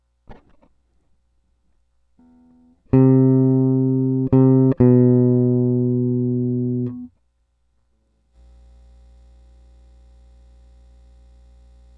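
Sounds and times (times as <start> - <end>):
electric guitar: 2.2 - 7.1.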